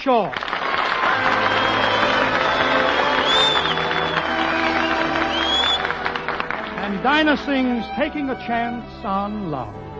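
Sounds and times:
speech: 0:00.0 - 0:00.5, 0:07.0 - 0:09.8
audience applause: 0:00.2 - 0:07.7
faint crowd noise: 0:00.7 - 0:07.4
thin whistling tones: 0:01.2 - 0:06.2.

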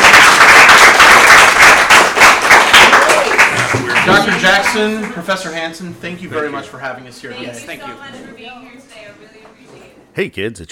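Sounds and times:
audience applause: 0:00.0 - 0:05.4
speech: 0:04.0 - 0:10.7.

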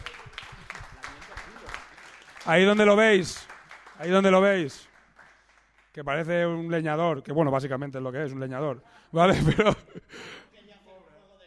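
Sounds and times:
laughter: 0:00.0 - 0:01.6, 0:09.2 - 0:10.1
audience applause: 0:00.0 - 0:05.9
speech: 0:02.4 - 0:04.9, 0:06.0 - 0:09.8.

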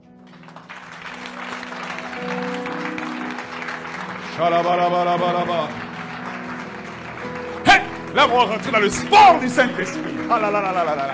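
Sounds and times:
church congregation applauding a departing pastor: 0:00.0 - 0:11.1
speech: 0:04.4 - 0:05.8, 0:08.1 - 0:11.1.

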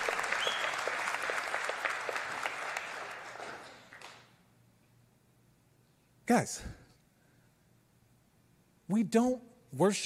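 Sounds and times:
audience clapping: 0:00.0 - 0:04.4
speech: 0:06.3 - 0:06.8, 0:08.9 - 0:10.0.

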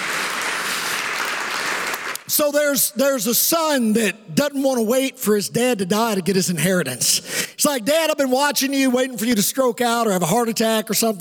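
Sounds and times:
audience hand clapping: 0:00.0 - 0:02.3
speech: 0:02.4 - 0:11.1.

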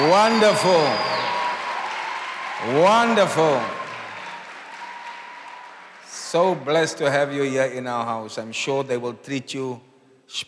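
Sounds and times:
crowd clapping: 0:00.0 - 0:08.1
speech: 0:00.1 - 0:01.1, 0:02.6 - 0:03.8, 0:06.3 - 0:10.4.

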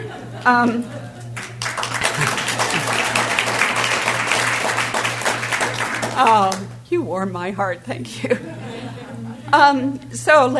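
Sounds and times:
laughter: 0:00.0 - 0:05.8, 0:08.1 - 0:10.1
speech: 0:00.1 - 0:01.0, 0:06.2 - 0:08.6, 0:09.5 - 0:10.5
audience clapping: 0:01.2 - 0:06.8.

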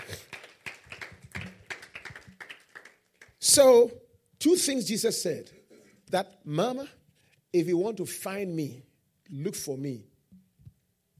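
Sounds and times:
audience clapping: 0:00.0 - 0:03.6
speech: 0:03.4 - 0:10.1.

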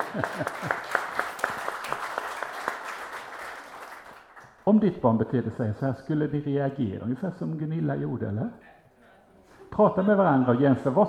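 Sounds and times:
laughter: 0:00.0 - 0:01.6
audience applause: 0:00.0 - 0:04.6
speech: 0:00.2 - 0:01.0, 0:04.7 - 0:08.6, 0:09.8 - 0:11.0.

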